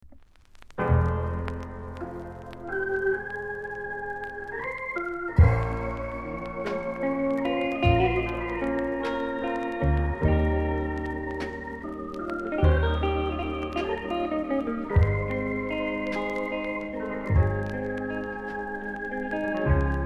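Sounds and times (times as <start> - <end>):
rocksteady music: 0.8 - 20.0.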